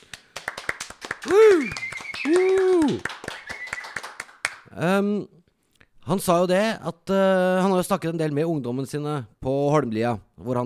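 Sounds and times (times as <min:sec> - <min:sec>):
audience applause: 0:00.0 - 0:04.6
speech: 0:01.2 - 0:03.1, 0:04.8 - 0:05.4, 0:06.1 - 0:10.6.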